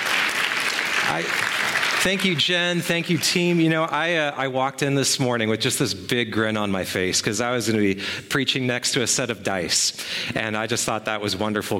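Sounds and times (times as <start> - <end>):
roomful of people clapping: 0.0 - 3.7
speech: 1.1 - 11.7.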